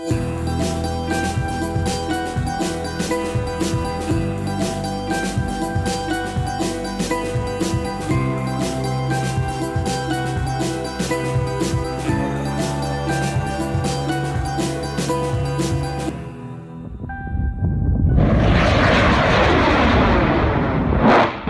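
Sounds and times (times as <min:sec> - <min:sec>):
music: 0:00.0 - 0:19.0
homemade rocket lifting off: 0:17.7 - 0:21.4.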